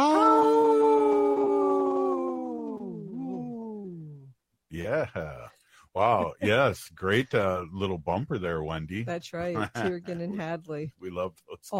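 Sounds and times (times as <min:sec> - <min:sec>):
wolf howling: 0:00.0 - 0:04.2
laughter: 0:04.8 - 0:07.2, 0:09.5 - 0:10.4
speech: 0:04.8 - 0:11.7.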